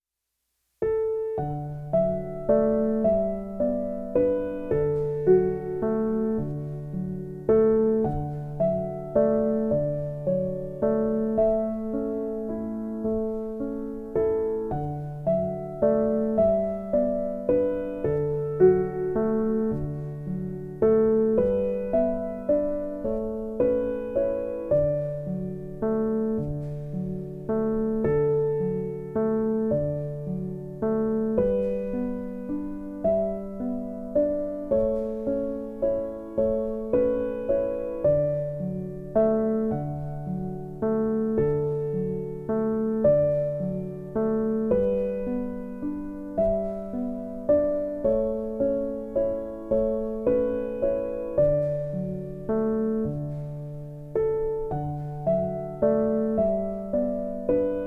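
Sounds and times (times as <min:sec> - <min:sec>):
piano music: 0:00.8 - 0:57.8.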